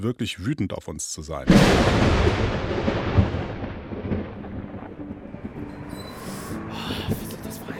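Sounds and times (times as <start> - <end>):
speech: 0.0 - 3.2
rolling thunder from an evening storm with heavy lightning: 1.5 - 7.2.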